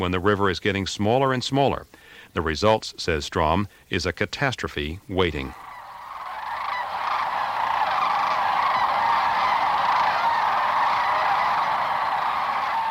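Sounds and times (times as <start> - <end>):
speech: 0.0 - 5.7
flock of up to 10,000 cranes lifting off the river at sunrise: 5.4 - 12.8.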